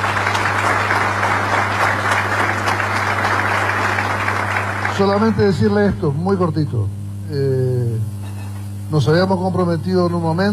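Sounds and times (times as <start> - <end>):
audience applause: 0.0 - 5.9
speech: 5.0 - 7.6, 8.9 - 10.5.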